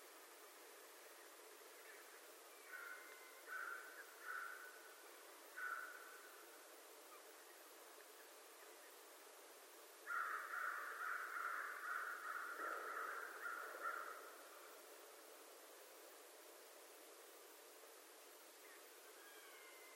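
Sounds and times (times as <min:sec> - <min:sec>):
American crow giving harsh raspy caws: 0:02.7 - 0:04.8, 0:05.6 - 0:06.2, 0:10.0 - 0:14.5.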